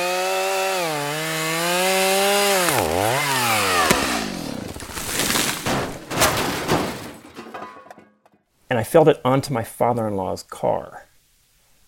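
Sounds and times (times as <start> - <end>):
chainsaw cutting down a tree: 0.0 - 6.1
speech: 8.8 - 11.1.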